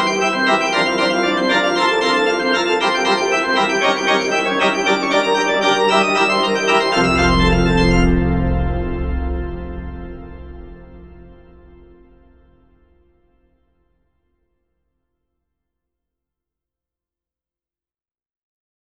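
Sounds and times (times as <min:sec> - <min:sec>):
toccata: 0:00.0 - 0:12.5.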